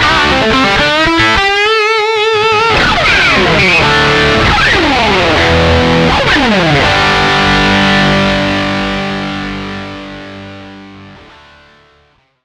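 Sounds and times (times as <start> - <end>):
lead guitar: 0.0 - 12.4.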